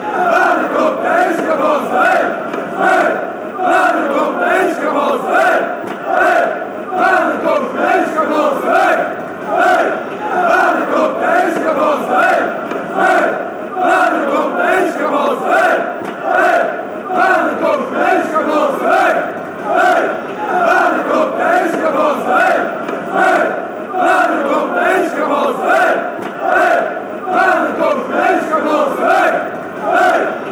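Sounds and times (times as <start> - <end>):
fans chanting hey hey: 0.0 - 30.5.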